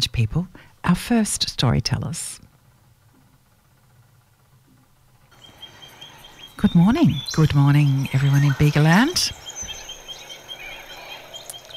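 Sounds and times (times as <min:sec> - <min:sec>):
speech: 0:00.0 - 0:02.4, 0:06.6 - 0:09.4
birds calling by the Bega River: 0:05.3 - 0:11.7.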